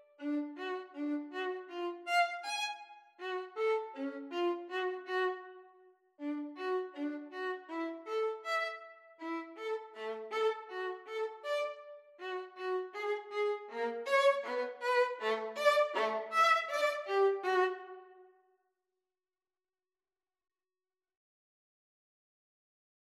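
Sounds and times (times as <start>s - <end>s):
violin pizzicato: 0.0s - 5.6s, 6.2s - 18.0s.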